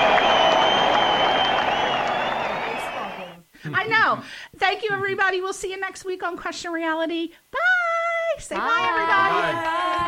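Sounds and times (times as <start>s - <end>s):
small group clapping at the end of a talk show: 0.0s - 3.3s
cheering whoops: 0.0s - 3.4s
speech: 3.8s - 7.6s, 8.3s - 9.9s.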